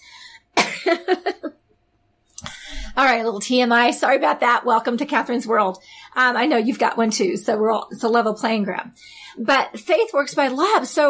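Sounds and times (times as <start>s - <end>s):
woman coughing after choking on her own saliva: 0.6s - 1.4s
speech: 3.0s - 11.0s.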